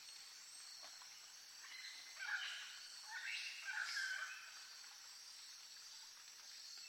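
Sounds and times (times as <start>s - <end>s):
monkey above a boat on the Amazon: 1.6s - 5.0s.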